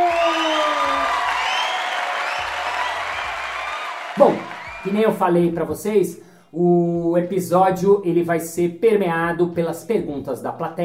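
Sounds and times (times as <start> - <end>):
cheers and whoops: 0.0 - 4.9
audience applauding: 0.0 - 5.2
speech: 4.2 - 10.8.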